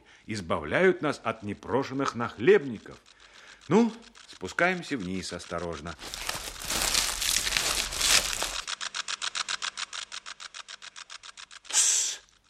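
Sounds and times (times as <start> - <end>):
speech: 0.3 - 3.1, 3.7 - 6.4
green grasshopper crackling: 0.3 - 12.4.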